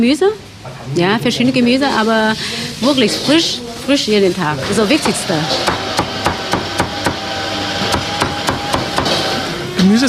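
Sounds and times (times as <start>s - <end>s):
speech: 0.0s - 5.8s, 9.8s - 10.0s
cleaver chopping duck meat on a wooden block: 5.0s - 9.4s.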